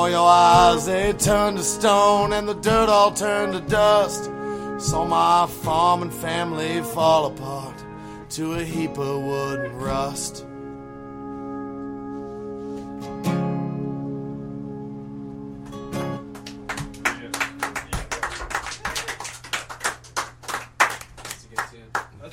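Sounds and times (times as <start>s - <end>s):
speech: 0.0s - 10.5s
audience clapping: 16.2s - 22.3s.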